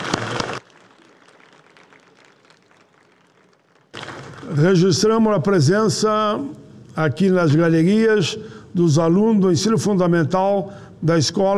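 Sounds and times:
senate audience applause: 0:00.0 - 0:04.8
speech: 0:04.4 - 0:11.5.

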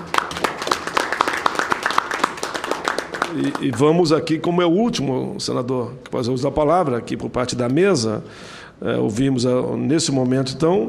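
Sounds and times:
audience applause: 0:00.0 - 0:04.0
speech: 0:03.3 - 0:10.8.

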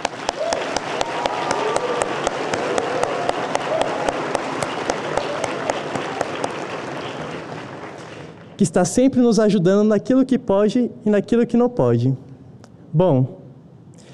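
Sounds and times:
audience applause: 0:00.0 - 0:08.6
speech: 0:08.6 - 0:12.2, 0:12.9 - 0:13.4.

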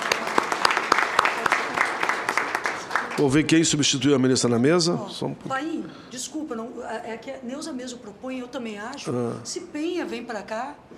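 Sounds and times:
round of applause: 0:00.0 - 0:03.6
speech: 0:03.2 - 0:10.9.

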